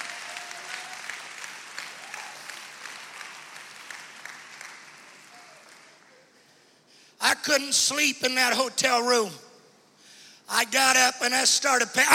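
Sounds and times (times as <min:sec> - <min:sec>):
audience clapping hands: 0:00.0 - 0:06.5
speech: 0:07.2 - 0:09.4, 0:10.6 - 0:12.1.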